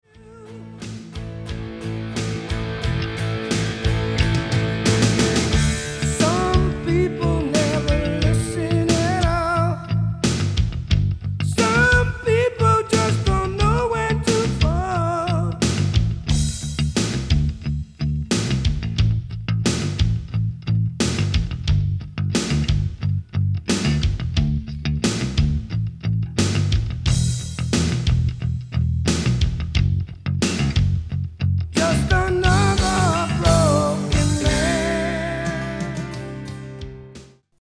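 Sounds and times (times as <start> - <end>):
funky bass: 0.0 - 37.4.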